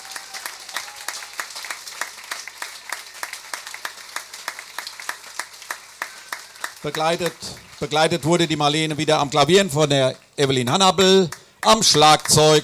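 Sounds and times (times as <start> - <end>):
audience applause: 0.0 - 9.0
speech: 6.8 - 12.6.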